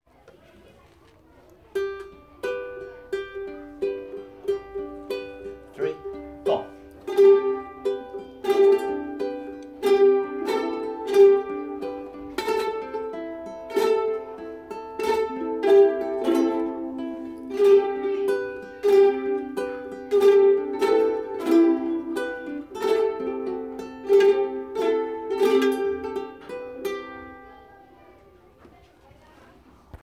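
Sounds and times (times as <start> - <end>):
evening melody: 1.9 - 27.7.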